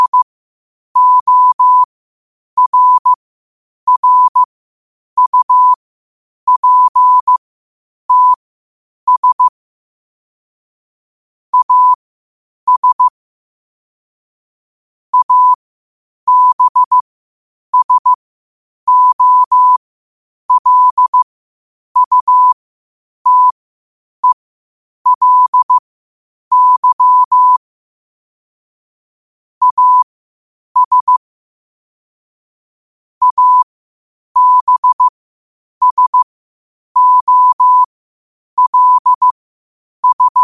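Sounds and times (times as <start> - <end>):
morse code at 5 wpm: 0.0 - 0.3, 1.0 - 1.9, 2.6 - 3.2, 3.9 - 4.5, 5.2 - 5.8, 6.5 - 7.4, 8.1 - 8.4, 9.1 - 9.5, 11.5 - 12.0, 12.7 - 13.1, 15.2 - 15.6, 16.3 - 17.0, 17.8 - 18.2, 18.9 - 19.8, 20.5 - 21.2, 22.0 - 22.6, 23.2 - 23.6, 25.1 - 25.8, 26.5 - 27.6, 29.6 - 30.0, 30.8 - 31.2, 33.2 - 33.7, 34.4 - 35.1, 35.8 - 36.3, 37.0 - 37.9, 38.6 - 39.4, 40.0 - 40.4.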